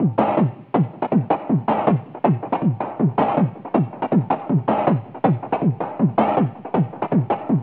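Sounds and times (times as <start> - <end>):
whine beat: 0.0 - 7.6.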